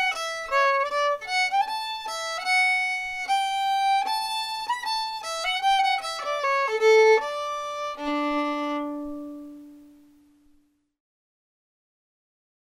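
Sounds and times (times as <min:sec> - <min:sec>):
fiddle: 0:00.0 - 0:10.1.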